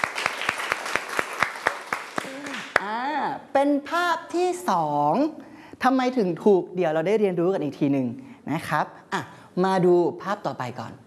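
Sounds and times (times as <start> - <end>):
students clapping: 0.0 - 2.8
speech: 2.8 - 11.0.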